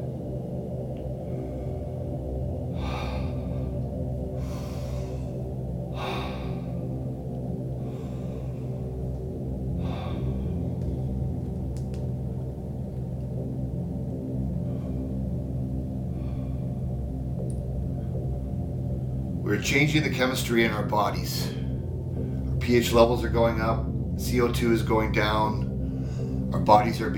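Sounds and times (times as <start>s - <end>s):
deep guided breathing: 0.0s - 19.5s, 21.4s - 22.6s, 25.6s - 26.6s
sustained musical drone: 0.0s - 27.1s
speech: 19.6s - 21.6s, 22.7s - 25.6s, 26.5s - 27.1s.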